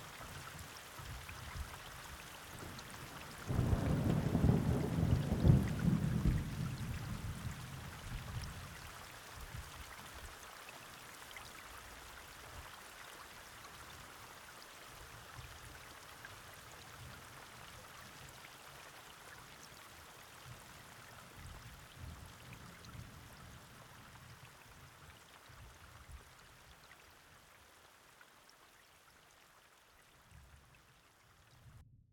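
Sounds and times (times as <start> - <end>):
thunderstorm: 3.4 - 8.7.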